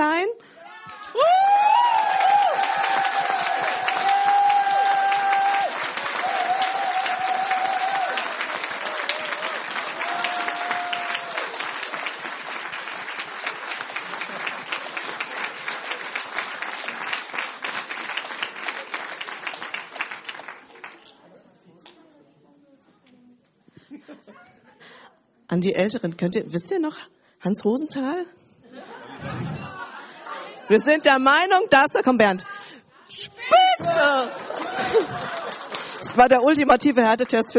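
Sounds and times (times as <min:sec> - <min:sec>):
audience applause: 0:00.9 - 0:21.1, 0:33.6 - 0:36.2
laughter: 0:14.0 - 0:15.0, 0:23.8 - 0:24.8, 0:28.6 - 0:30.8, 0:33.6 - 0:36.0
speech: 0:25.6 - 0:28.4, 0:30.7 - 0:32.5, 0:36.2 - 0:37.5.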